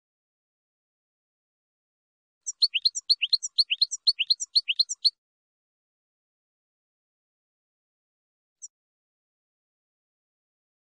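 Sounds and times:
finch song: 2.4s - 5.2s.

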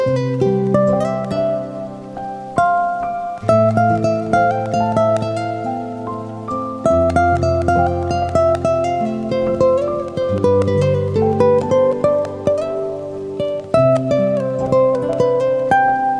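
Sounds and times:
guitar playing: 0.0s - 16.1s
rain: 0.0s - 16.1s.

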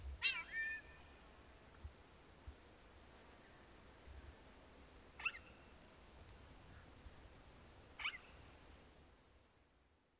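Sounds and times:
Neumann's starling calling: 0.2s - 1.1s, 5.2s - 5.7s, 8.0s - 8.5s.

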